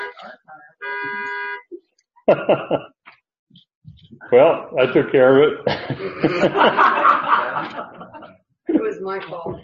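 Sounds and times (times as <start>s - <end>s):
voice sounds: 0.0s - 0.8s
car horn set off by key fob: 0.0s - 1.7s
speech: 0.2s - 1.2s, 2.3s - 2.9s, 4.3s - 7.0s
laughter: 2.3s - 3.0s, 4.8s - 8.9s.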